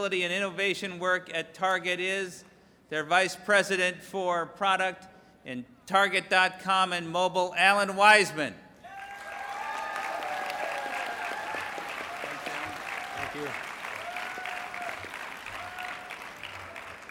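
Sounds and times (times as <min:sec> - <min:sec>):
speech: 0:00.0 - 0:08.6
audience applause: 0:08.9 - 0:17.0.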